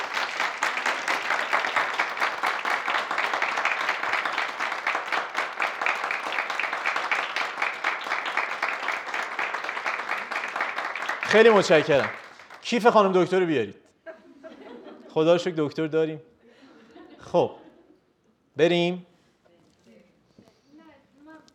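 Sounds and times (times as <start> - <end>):
audience applause: 0.0 - 13.2
speech: 11.3 - 13.8, 15.2 - 16.3, 17.2 - 17.6, 18.6 - 19.1
laughter: 14.1 - 15.5, 16.4 - 18.0.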